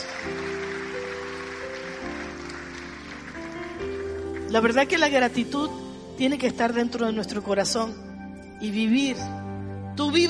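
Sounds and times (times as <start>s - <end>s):
audience applause: 0.0s - 4.8s
speech: 4.5s - 8.0s, 8.6s - 9.4s, 10.0s - 10.2s.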